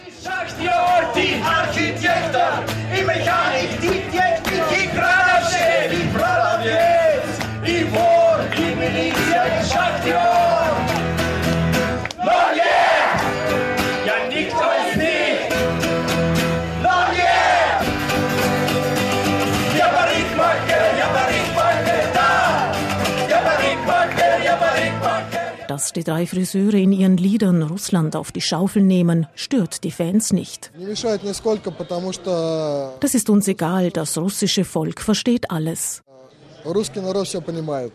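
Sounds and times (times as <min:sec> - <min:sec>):
concert crowd cheering: 0:00.0 - 0:25.6
speech: 0:26.0 - 0:37.9.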